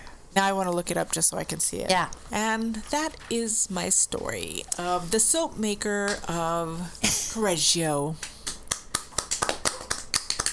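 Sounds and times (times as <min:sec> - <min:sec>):
speech: 0:00.4 - 0:08.4
hand claps: 0:08.2 - 0:10.5.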